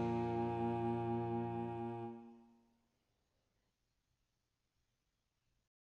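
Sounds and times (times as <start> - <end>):
slow tempo bourree with alto sax solo: 0.1 - 2.3.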